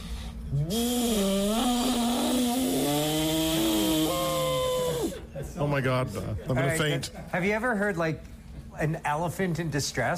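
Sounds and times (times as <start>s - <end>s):
speech: 0.5s - 1.2s, 5.8s - 10.1s
person imitating a jet boat with their voice: 0.5s - 5.2s.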